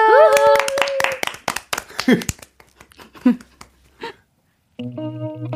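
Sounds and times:
studio audience applause: 0.1 - 3.7
speech: 2.1 - 2.3.

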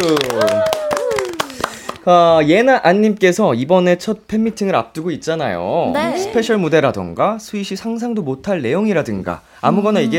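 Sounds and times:
speech: 0.0 - 0.6, 2.0 - 10.1
people clapping: 0.0 - 2.2
person exclaiming: 6.0 - 6.6.

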